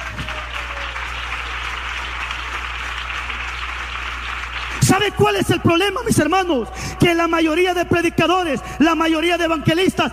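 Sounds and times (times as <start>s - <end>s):
audience clapping: 0.0s - 6.2s
speech: 4.9s - 10.1s.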